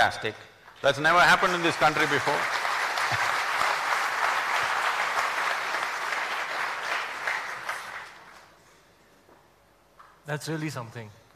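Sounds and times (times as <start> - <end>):
speech: 0.0 - 3.3, 10.3 - 11.3
audience applause: 0.9 - 8.5.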